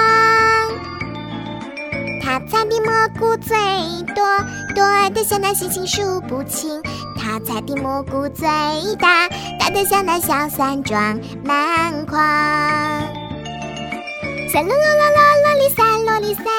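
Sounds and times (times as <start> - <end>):
children's song: 0.0 - 1.0, 1.7 - 13.2, 14.3 - 16.5.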